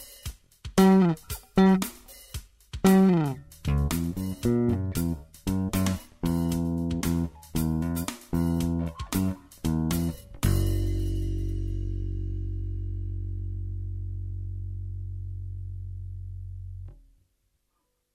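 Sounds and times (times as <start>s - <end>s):
drums: 0.0s - 12.2s
Jazz Bass with treble up: 0.7s - 2.1s, 2.8s - 17.2s.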